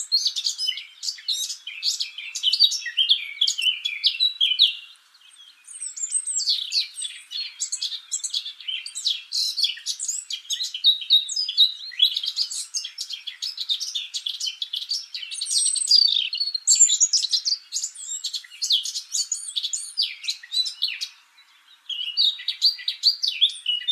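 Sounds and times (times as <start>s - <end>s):
Eurasian blackcap song: 0.0s - 23.9s.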